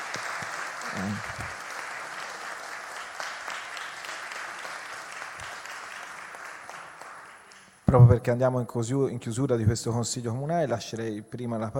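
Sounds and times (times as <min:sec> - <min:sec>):
audience applause: 0:00.0 - 0:07.7
speech: 0:00.9 - 0:01.5, 0:07.9 - 0:11.7.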